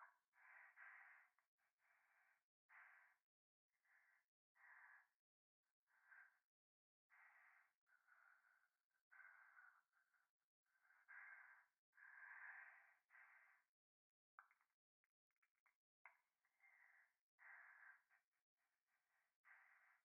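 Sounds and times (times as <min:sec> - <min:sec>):
breathing pressed against the right ear in a bath: 0:00.0 - 0:03.2, 0:03.8 - 0:05.2, 0:05.9 - 0:06.4, 0:07.1 - 0:13.7, 0:16.1 - 0:18.2, 0:19.0 - 0:20.0.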